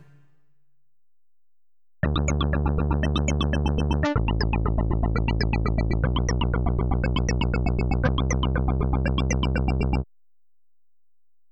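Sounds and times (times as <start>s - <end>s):
Synclavier synthesizer sequence: 2.1s - 10.1s.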